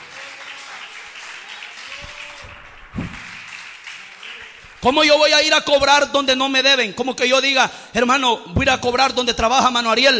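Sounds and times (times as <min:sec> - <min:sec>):
audience applause: 0:00.0 - 0:05.2
speech: 0:04.8 - 0:10.1.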